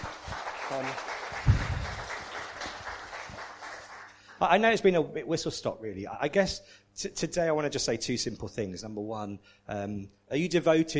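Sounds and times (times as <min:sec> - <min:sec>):
audience clapping: 0:00.0 - 0:04.6
speech: 0:00.7 - 0:01.6, 0:04.4 - 0:10.9.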